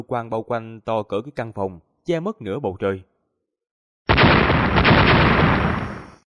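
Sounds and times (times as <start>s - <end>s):
speech: 0.0s - 3.1s
loud explosion: 4.1s - 6.3s.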